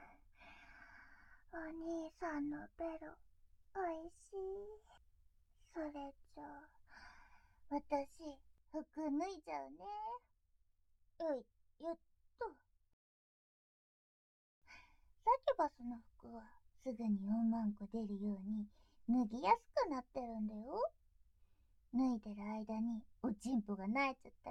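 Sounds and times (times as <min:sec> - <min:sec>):
voice only: 0:01.5 - 0:03.1, 0:03.8 - 0:04.8, 0:05.7 - 0:06.7, 0:07.7 - 0:10.2, 0:15.3 - 0:20.9, 0:21.9 - 0:24.4.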